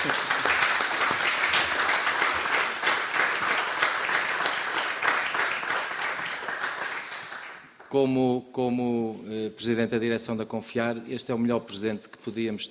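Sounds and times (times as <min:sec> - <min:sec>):
audience applause: 0:00.0 - 0:07.8
speech: 0:07.9 - 0:12.6.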